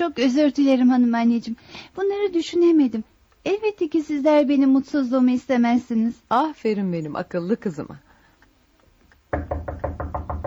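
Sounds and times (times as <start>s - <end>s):
speech: 0.0s - 8.1s
knocking on a door as suitors arrive: 9.3s - 10.4s.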